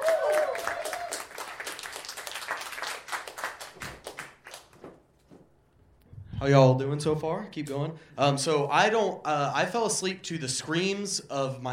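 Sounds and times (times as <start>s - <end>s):
whoops: 0.0s - 1.4s
crowd applauding: 0.0s - 4.8s
speech: 6.4s - 11.7s.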